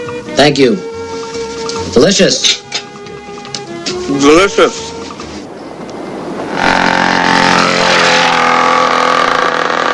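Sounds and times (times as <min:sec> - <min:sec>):
speech: 0:00.4 - 0:00.9, 0:01.8 - 0:02.6, 0:04.1 - 0:04.9
dirt bike engine roaring past outside a hotel: 0:06.5 - 0:09.9.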